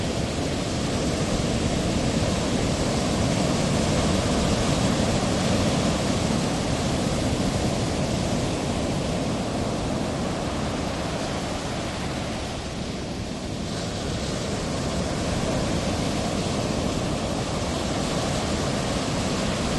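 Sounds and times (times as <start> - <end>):
ocean waves: 0.0 - 19.7.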